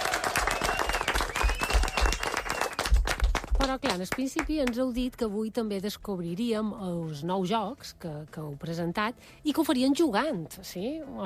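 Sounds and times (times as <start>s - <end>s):
audience applause: 0.0s - 4.0s
speech: 3.7s - 11.2s.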